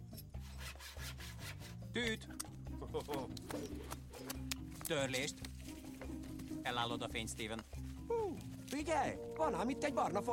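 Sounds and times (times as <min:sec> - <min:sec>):
hand saw sawing: 0:00.4 - 0:01.9
speech: 0:02.0 - 0:10.3.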